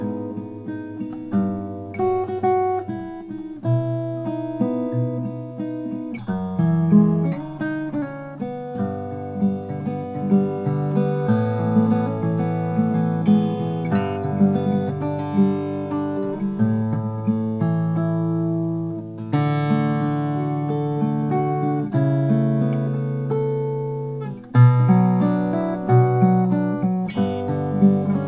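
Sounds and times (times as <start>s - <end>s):
Applegate FS 12 Brazilian rosewood guitar playing: 0.0s - 28.2s.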